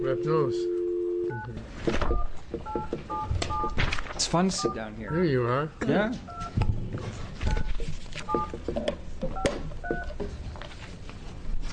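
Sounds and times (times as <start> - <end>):
speech: 0.0 - 7.6, 8.3 - 9.5
faint noise: 0.0 - 11.7
dual-tone telephone keypad beeps: 2.1 - 3.8, 4.6 - 5.3, 6.3 - 6.8, 7.5 - 8.6, 9.3 - 10.2.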